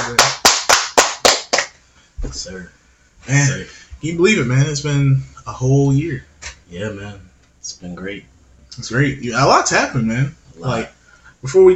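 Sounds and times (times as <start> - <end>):
loud hand claps: 0.0 - 1.8
speech: 2.2 - 11.7.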